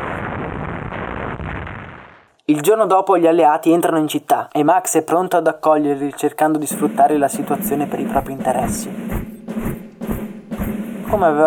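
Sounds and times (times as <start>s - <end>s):
heavy bombing explosions from an air raid: 0.0s - 2.3s, 6.6s - 11.4s
speech: 2.5s - 9.2s, 11.1s - 11.4s.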